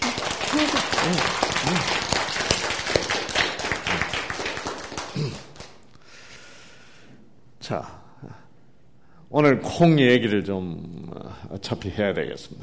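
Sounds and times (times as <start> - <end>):
audience applause: 0.0 - 5.8
speech: 0.6 - 2.0, 7.7 - 8.0, 9.4 - 12.6.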